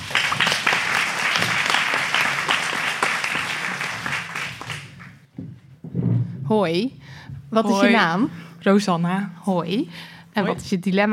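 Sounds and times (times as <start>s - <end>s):
audience applause: 0.0s - 5.2s
speech: 6.5s - 11.1s.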